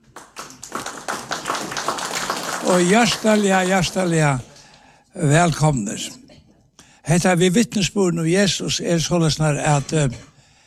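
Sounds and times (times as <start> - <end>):
church audience clapping: 0.0 - 5.7
speech: 2.6 - 4.5, 5.2 - 6.2, 7.1 - 10.3.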